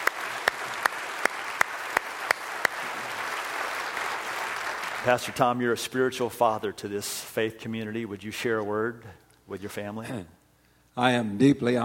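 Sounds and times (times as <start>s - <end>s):
audience applauding: 0.0s - 5.7s
speech: 5.0s - 10.4s, 11.0s - 11.8s.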